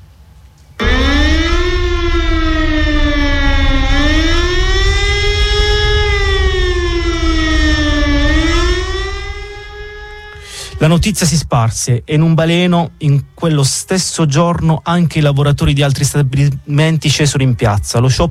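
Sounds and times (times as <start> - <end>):
air-raid siren wailing: 0.8 - 13.4
low rumbling background: 0.8 - 16.6
speech: 10.8 - 18.3.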